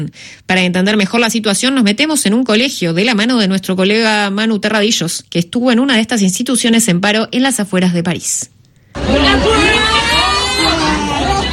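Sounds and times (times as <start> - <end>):
speech: 0.0 - 9.7
students shouting at protest: 9.0 - 11.5.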